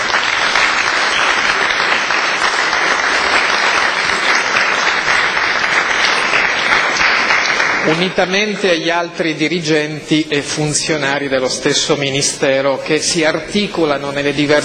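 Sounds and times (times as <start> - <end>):
audience applause: 0.0 - 8.9
speech: 7.9 - 14.6.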